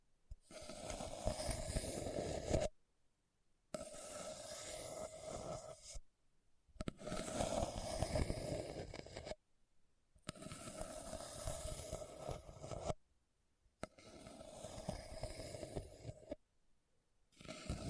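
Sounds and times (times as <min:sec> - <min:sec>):
rough scratching across a hard surface: 0:00.3 - 0:02.8, 0:03.7 - 0:06.0, 0:06.8 - 0:09.4, 0:10.2 - 0:13.0, 0:13.8 - 0:16.4, 0:17.3 - 0:17.8.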